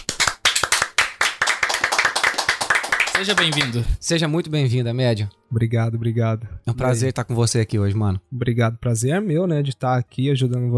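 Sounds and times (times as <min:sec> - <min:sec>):
people clapping: 0:00.0 - 0:03.9
speech: 0:03.2 - 0:10.7.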